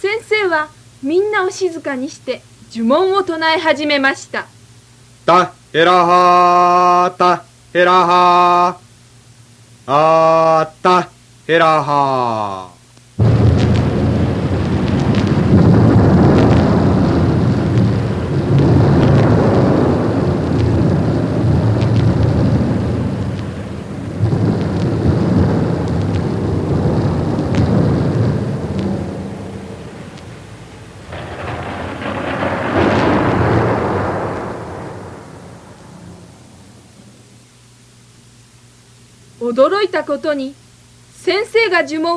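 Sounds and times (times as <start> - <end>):
speech: 0.5 - 4.6, 5.3 - 8.8, 9.9 - 13.3, 39.6 - 40.6, 41.2 - 42.1
rolling thunder: 13.2 - 37.3.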